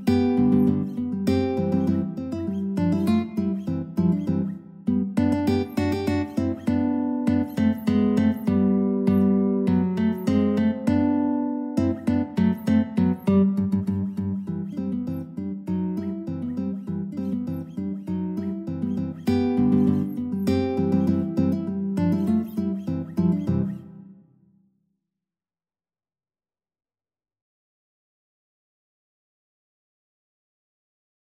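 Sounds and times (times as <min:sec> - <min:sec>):
guitar duet: 0:00.0 - 0:24.2.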